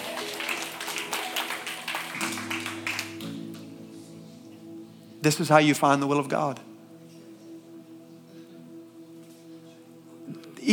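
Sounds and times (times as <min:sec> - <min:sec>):
audience clapping: 0:00.0 - 0:03.7
speech: 0:05.2 - 0:06.7.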